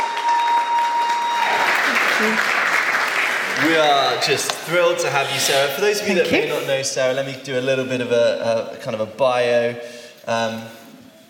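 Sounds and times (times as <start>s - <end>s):
audience applause: 0.0s - 4.9s
speech: 2.2s - 2.5s, 3.6s - 10.8s.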